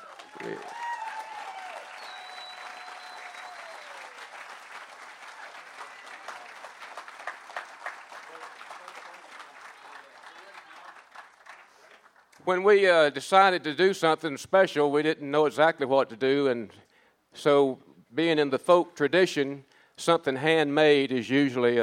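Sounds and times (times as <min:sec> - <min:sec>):
cheers and whoops: 0:00.0 - 0:04.4
crowd applauding: 0:00.0 - 0:12.4
speech: 0:00.4 - 0:00.8, 0:12.5 - 0:16.8, 0:17.4 - 0:21.8.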